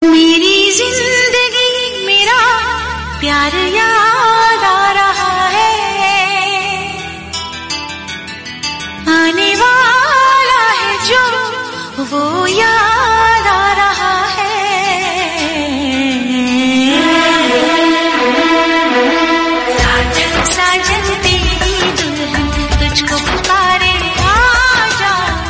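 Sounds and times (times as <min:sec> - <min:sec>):
Hindi romantic song: 0:00.0 - 0:25.4.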